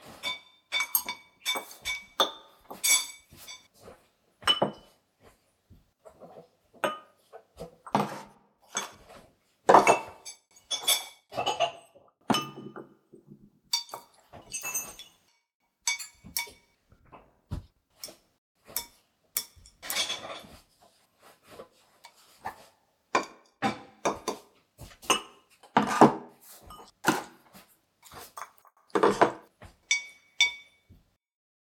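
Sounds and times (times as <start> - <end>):
home meal sounds: 0.0 - 31.2.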